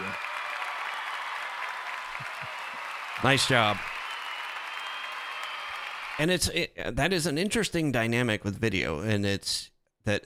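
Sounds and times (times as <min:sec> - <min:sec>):
canned applause from an applause button: 0:00.0 - 0:06.5
speech: 0:03.2 - 0:03.9, 0:06.2 - 0:10.2.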